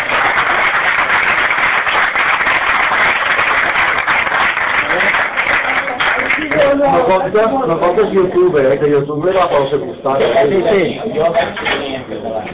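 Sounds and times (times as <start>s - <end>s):
crowd applauding: 0.0s - 7.2s
speech: 6.9s - 12.5s.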